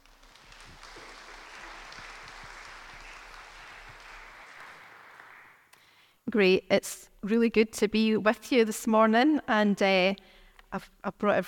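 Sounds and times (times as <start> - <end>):
audience applause welcoming a guest speaker to a morning Bible talk: 0.0 - 5.7
speech: 6.3 - 11.4.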